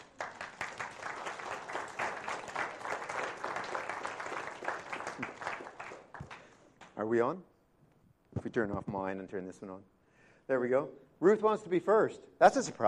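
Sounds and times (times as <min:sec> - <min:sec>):
audience clapping to welcome people: 0:00.0 - 0:07.0
speech: 0:07.0 - 0:07.5, 0:08.4 - 0:12.8.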